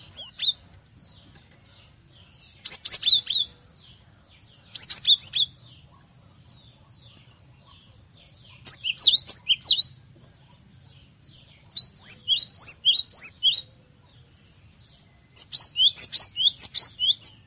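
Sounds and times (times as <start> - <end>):
cinereous tit whistling song: 2.6 - 3.6, 8.7 - 10.0, 11.7 - 13.7, 15.4 - 17.4.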